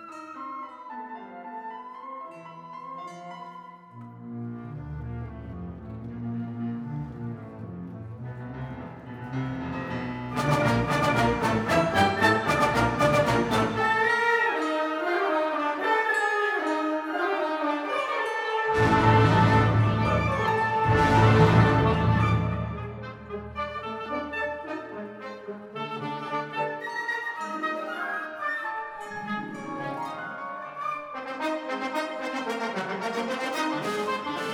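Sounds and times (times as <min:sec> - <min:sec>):
symphonic band playing: 0:08.7 - 0:34.5.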